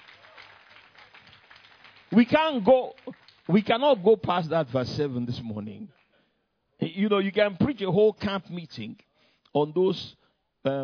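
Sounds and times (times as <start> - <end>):
audience applause: 0.0 - 4.1
speech: 2.1 - 6.0, 6.8 - 10.8.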